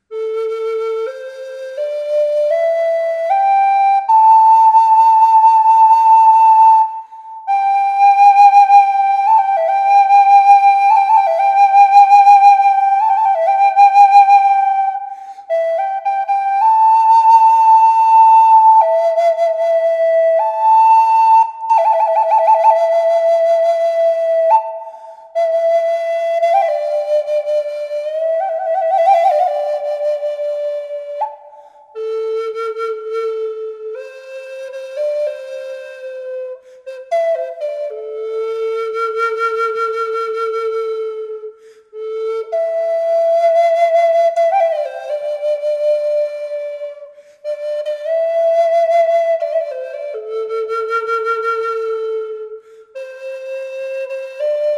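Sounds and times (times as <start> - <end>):
flute with reverb: 0.0 - 54.7.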